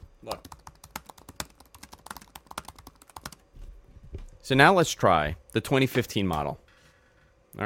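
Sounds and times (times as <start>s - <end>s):
typing on a computer keyboard: 0.3s - 3.4s
speech: 4.4s - 6.6s.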